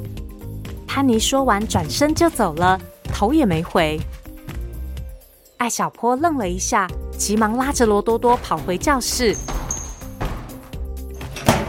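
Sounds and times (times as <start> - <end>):
speech: 1.0 - 4.2, 5.6 - 9.6
school locker door being opened: 7.7 - 11.6.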